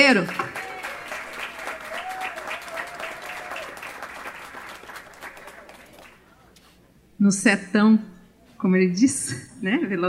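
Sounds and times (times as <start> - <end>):
speech: 0.0 - 0.4, 7.2 - 10.0
audience applause: 0.0 - 6.2.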